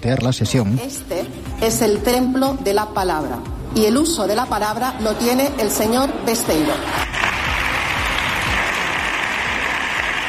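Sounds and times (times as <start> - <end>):
speech: 0.0 - 7.0
applause in parliament chamber: 7.0 - 10.2.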